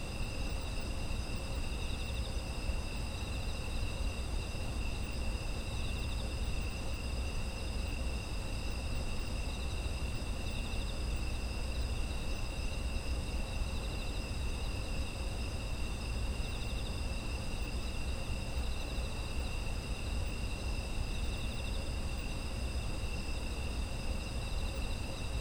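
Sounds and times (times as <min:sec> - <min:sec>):
insect chorus trilling: 0:00.0 - 0:25.3.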